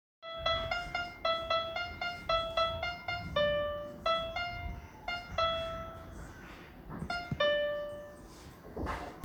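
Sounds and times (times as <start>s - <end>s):
piano: 0.2s - 9.2s.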